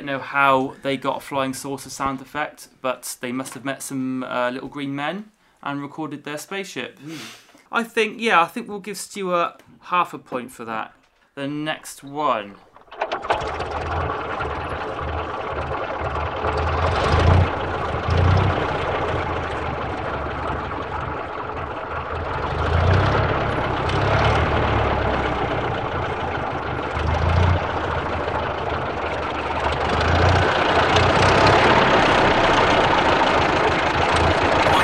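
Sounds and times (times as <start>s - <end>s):
speech: 0.0s - 12.7s
old car engine running: 12.6s - 34.8s.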